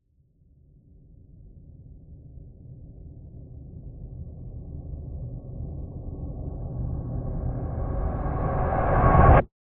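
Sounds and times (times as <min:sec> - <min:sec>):
cinematic tension build: 0:06.2 - 0:09.5
cinematic reverse impact: 0:06.8 - 0:09.5.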